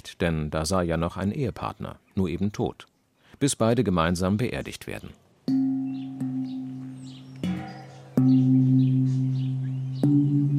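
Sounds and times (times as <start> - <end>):
birds chirping: 0.0 - 10.5
speech: 0.1 - 5.6
deep funeral gong struck to summon neighbours: 5.5 - 10.5.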